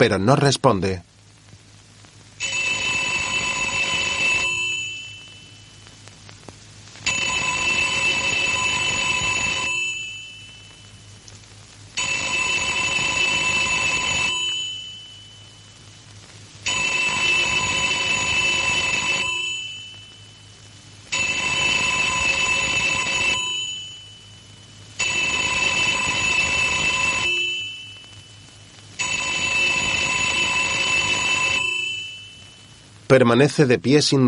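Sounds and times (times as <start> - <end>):
speech: 0.0 - 1.1, 33.2 - 34.2
telephone ringing: 2.4 - 5.7, 7.0 - 10.9, 12.0 - 15.6, 16.6 - 20.3, 21.1 - 32.8.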